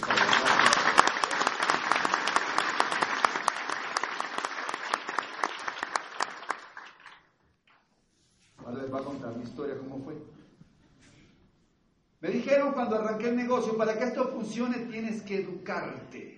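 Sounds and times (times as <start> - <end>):
audience applause: 0.0 - 7.3
speech: 12.4 - 16.3.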